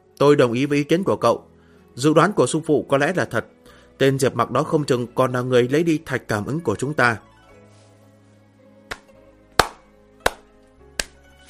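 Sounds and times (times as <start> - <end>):
speech: 0.2 - 7.3
slow hand claps from a single person: 8.8 - 11.4.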